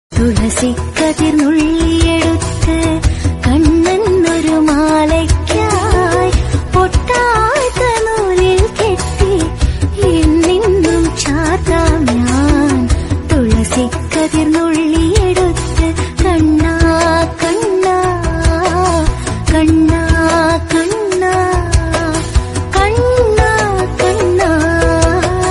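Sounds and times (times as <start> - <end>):
Krishna devotional song background music: 0.2 - 25.4.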